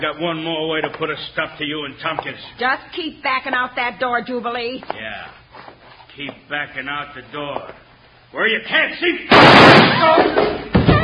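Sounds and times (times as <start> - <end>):
speech: 0.0 - 5.4, 6.2 - 10.7
gunshot: 9.3 - 11.0.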